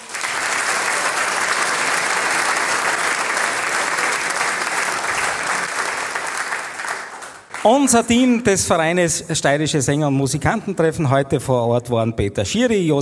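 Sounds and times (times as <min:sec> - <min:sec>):
large audience applause: 0:00.0 - 0:07.9
speech: 0:07.6 - 0:13.0.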